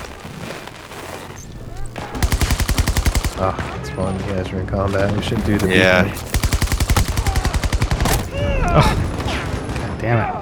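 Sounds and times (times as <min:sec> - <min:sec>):
automatic gunfire from a gun in a video game: 0:02.0 - 0:03.7, 0:05.3 - 0:10.0
speech: 0:03.4 - 0:06.4, 0:08.7 - 0:09.0, 0:10.0 - 0:10.4.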